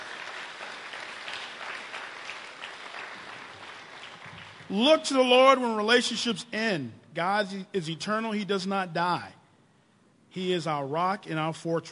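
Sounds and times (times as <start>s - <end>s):
audience applause: 0.0s - 4.7s
speech: 4.7s - 9.4s, 10.3s - 11.8s.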